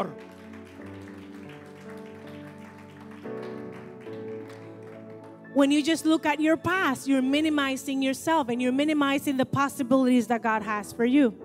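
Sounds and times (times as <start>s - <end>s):
audience applause: 0.0s - 5.5s
speech: 5.6s - 11.4s.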